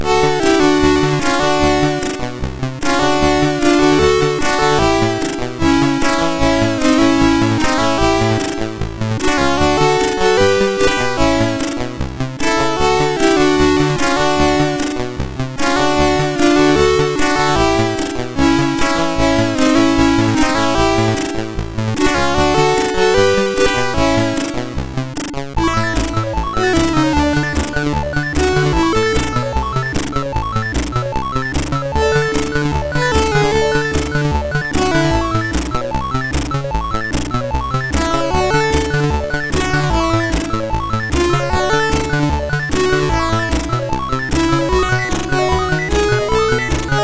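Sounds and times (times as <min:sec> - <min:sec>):
MOS6581R4 SID chip music: 0:00.0 - 0:47.0.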